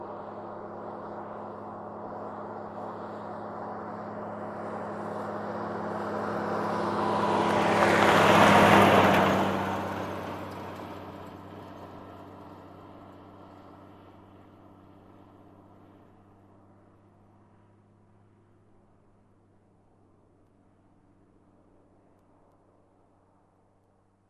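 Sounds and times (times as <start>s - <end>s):
military jeep passing by: 0.0s - 15.7s.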